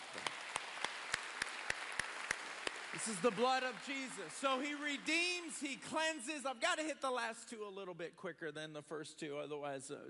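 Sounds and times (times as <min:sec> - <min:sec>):
audience applause: 0:00.0 - 0:06.1
speech: 0:03.0 - 0:10.0.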